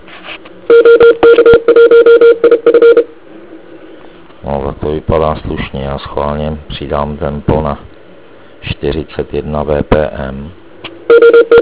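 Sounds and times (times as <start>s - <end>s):
Morse code keyed on a radio receiver: 0.7s - 3.1s, 11.1s - 11.5s
speech: 5.1s - 7.9s, 8.8s - 10.6s.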